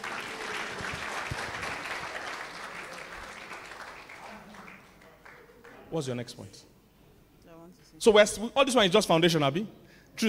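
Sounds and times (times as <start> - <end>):
audience clapping: 0.0 - 5.9
speech: 5.9 - 6.7, 8.0 - 10.2.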